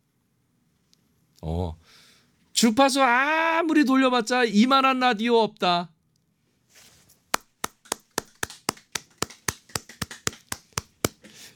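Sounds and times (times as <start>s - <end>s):
speech: 1.4s - 5.9s
soft rustle: 6.5s - 7.3s
three people clapping in studio: 7.4s - 11.3s.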